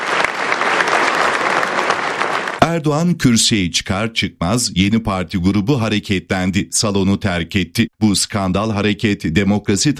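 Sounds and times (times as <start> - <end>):
applause in the general assembly of the Turkish parliament: 0.0 - 2.7
speech: 2.7 - 9.9.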